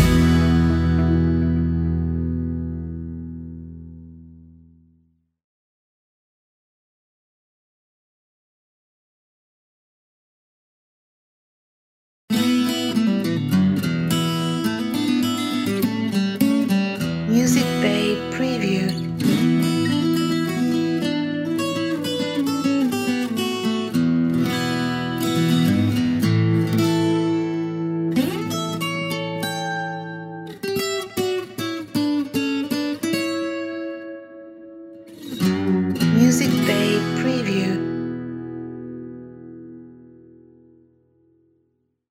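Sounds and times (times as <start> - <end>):
blues music: 0.0 - 4.3, 12.3 - 40.4.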